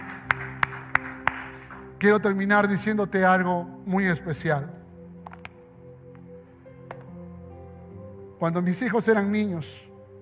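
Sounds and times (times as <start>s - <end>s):
hand claps: 0.0s - 1.8s
speech: 2.0s - 4.8s, 8.4s - 9.9s.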